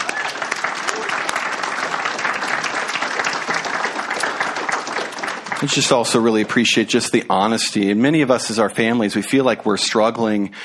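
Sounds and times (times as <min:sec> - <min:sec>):
round of applause: 0:00.0 - 0:07.6
speech: 0:05.6 - 0:10.6.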